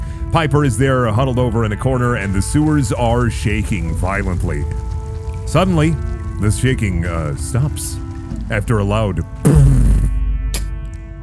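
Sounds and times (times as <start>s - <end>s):
speech: 0.3s - 4.9s, 5.5s - 9.7s
bass-boosted fart sound effect: 9.5s - 10.7s.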